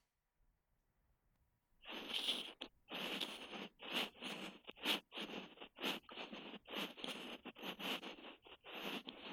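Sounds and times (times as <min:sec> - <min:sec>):
ASMR ear cleaning on the left side: 0:01.9 - 0:09.3.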